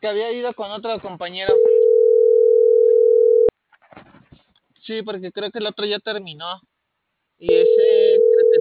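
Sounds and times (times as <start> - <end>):
speech: 0.0 - 1.8, 4.9 - 6.7, 7.4 - 8.0
telephone dial tone while placing a call: 1.5 - 3.5, 7.5 - 8.5.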